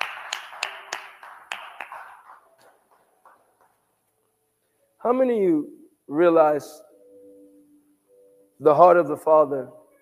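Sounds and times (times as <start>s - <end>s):
audience hand clapping: 0.0s - 4.2s
speech: 5.0s - 6.8s, 8.6s - 9.8s.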